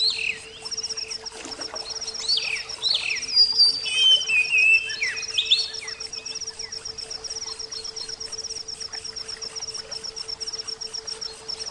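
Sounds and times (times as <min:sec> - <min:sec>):
oriental magpie-robin whistled song: 0:02.0 - 0:06.8.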